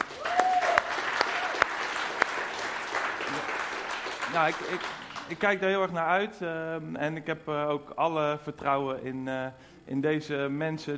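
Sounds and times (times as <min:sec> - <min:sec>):
audience applauding: 0:00.0 - 0:05.5
speech: 0:04.4 - 0:10.9.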